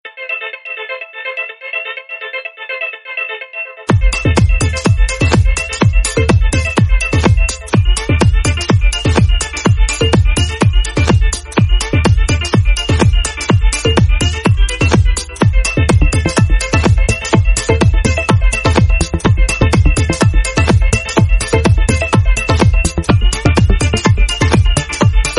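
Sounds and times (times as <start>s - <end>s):
tech house ringtone: 0.4s - 25.3s.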